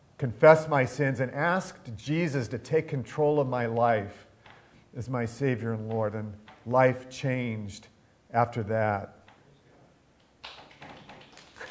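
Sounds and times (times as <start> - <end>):
speech: 0.2 - 4.3, 4.9 - 9.2
audience applause: 10.5 - 11.6.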